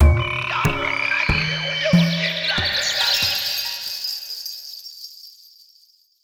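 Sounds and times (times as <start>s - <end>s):
forest mood music: 0.0s - 3.8s.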